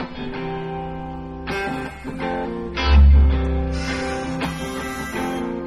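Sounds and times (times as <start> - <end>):
jazz music: 1.5 - 5.5.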